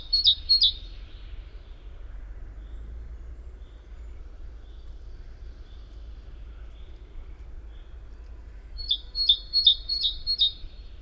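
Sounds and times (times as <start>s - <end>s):
great tit calling: 0.0s - 0.8s, 8.8s - 10.6s.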